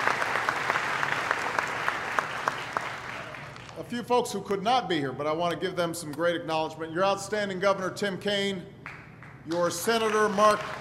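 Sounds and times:
audience applause: 0.0 - 3.8, 9.6 - 10.7
speech: 3.9 - 8.7, 9.5 - 10.7.

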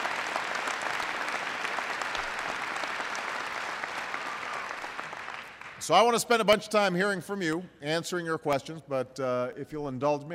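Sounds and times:
round of applause: 0.0 - 6.2
speech: 5.8 - 10.3.

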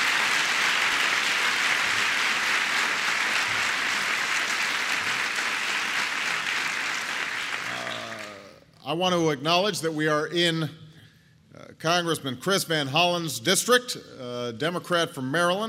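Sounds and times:
audience applause: 0.0 - 8.5
speech: 8.9 - 10.8, 11.8 - 15.6.

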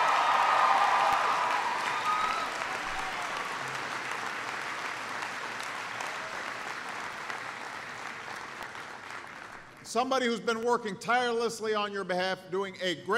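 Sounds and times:
audience applause: 0.0 - 9.9
speech: 9.9 - 13.1.

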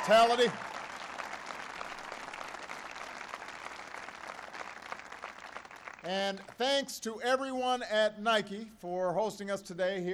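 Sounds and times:
audience applause: 0.0 - 6.1
speech: 0.1 - 0.7, 6.0 - 10.1.

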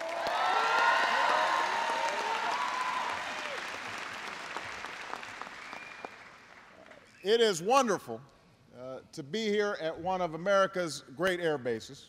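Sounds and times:
scattered audience cheers and whistles: 0.0 - 3.8, 5.4 - 6.3
audience applause from a large crowd: 0.0 - 7.0
speech: 7.2 - 8.4, 9.0 - 12.0.

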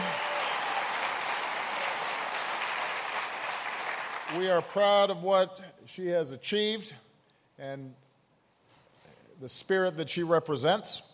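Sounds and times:
audience applause: 0.0 - 4.6
speech: 4.3 - 8.0, 9.4 - 11.1.

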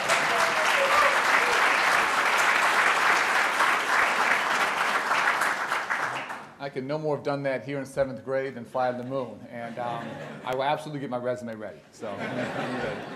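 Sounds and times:
applause from a large audience: 0.0 - 6.6
speech: 6.8 - 13.1
laughter: 9.6 - 10.7, 12.0 - 13.1.

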